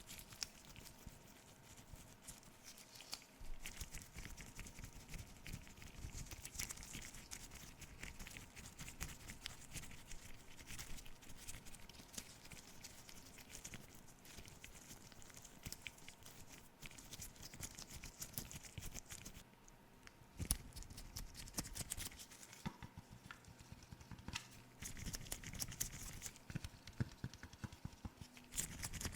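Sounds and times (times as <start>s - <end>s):
face and camera cleaning scratching and rubbing: 0.0s - 19.4s, 20.4s - 29.1s
faint low steady tone: 0.0s - 29.1s
quick irregular taps and pats: 22.6s - 24.6s, 26.5s - 28.3s.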